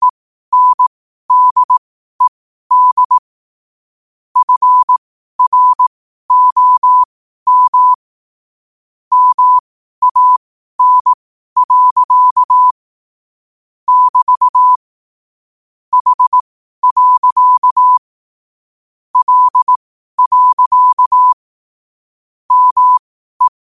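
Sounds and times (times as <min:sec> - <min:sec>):
morse code at 5 wpm: 0:00.5 - 0:03.2, 0:04.4 - 0:08.0, 0:09.1 - 0:12.8, 0:13.9 - 0:14.8, 0:15.9 - 0:18.0, 0:19.2 - 0:21.4, 0:22.5 - 0:23.6.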